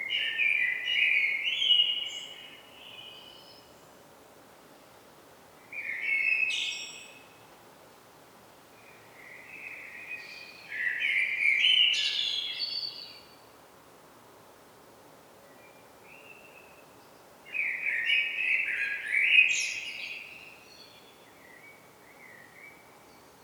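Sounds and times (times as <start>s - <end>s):
common blackbird Turdus merula song: 0.0s - 3.9s, 5.6s - 7.4s, 8.8s - 13.4s, 15.4s - 23.4s.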